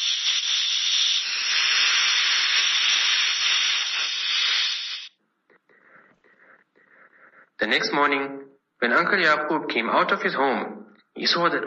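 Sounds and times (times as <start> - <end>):
air hissing out of car tires: 0.0 - 5.2
speech: 7.6 - 11.6.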